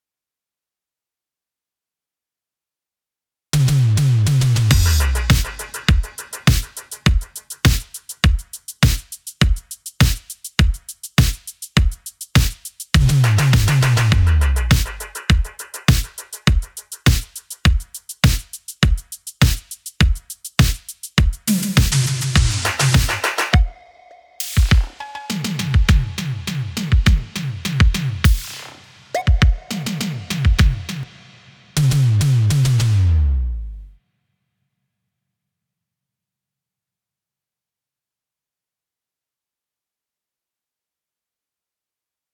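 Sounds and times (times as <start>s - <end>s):
drums: 3.6s - 23.8s, 24.4s - 33.2s.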